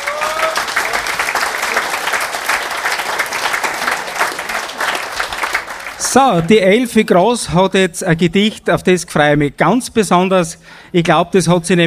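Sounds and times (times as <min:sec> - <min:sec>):
room full of people applauding: 0:00.0 - 0:06.6
speech: 0:06.1 - 0:11.8.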